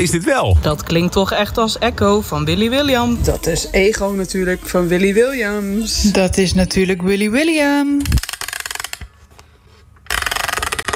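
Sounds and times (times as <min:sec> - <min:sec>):
speech: 0:00.0 - 0:08.2
music box being wound up: 0:08.0 - 0:09.1, 0:10.0 - 0:10.9.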